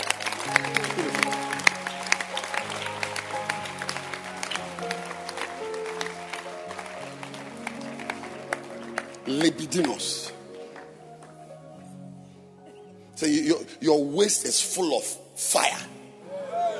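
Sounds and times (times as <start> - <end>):
congregation applause at a church meeting: 0.0 - 11.5
speech: 9.4 - 10.3, 13.2 - 16.0.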